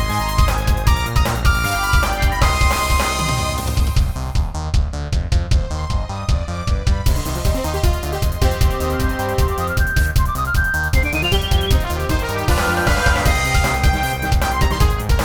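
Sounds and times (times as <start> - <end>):
RPG boss battle game music: 0.0 - 15.2.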